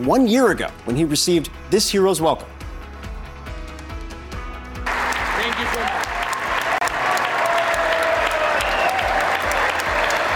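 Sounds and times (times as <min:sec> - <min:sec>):
speech: 0:00.0 - 0:02.6
standing ovation for Zelensky at joint session of Congress: 0:04.8 - 0:10.3.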